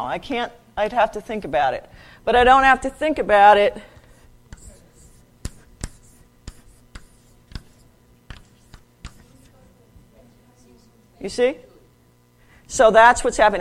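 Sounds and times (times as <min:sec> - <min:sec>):
speech: 0:00.0 - 0:03.9, 0:11.2 - 0:11.7, 0:12.7 - 0:13.6
right-handed pen writing on paper: 0:04.5 - 0:09.7.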